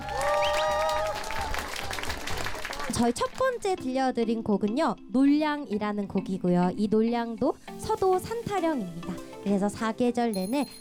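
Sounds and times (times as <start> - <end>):
whistles or cheers: 0.0 - 2.0
audience applause: 0.0 - 3.0
speech: 3.0 - 10.7.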